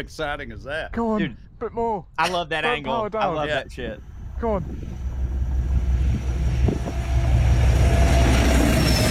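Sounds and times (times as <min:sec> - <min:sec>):
speech: 0:00.0 - 0:04.9
faint high whine: 0:02.7 - 0:09.1
heavy diesel freight locomotive hauling sand wagons: 0:03.6 - 0:09.1.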